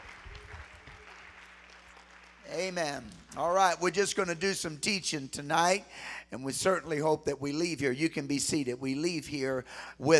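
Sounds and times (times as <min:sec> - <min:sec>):
church congregation clapping hands in worship: 0:00.0 - 0:04.1
speech: 0:02.5 - 0:10.1.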